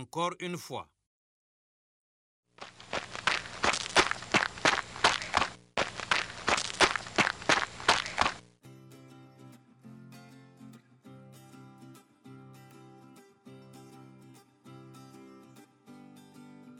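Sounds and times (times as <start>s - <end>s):
speech: 0.0s - 1.0s
person running: 2.6s - 8.5s.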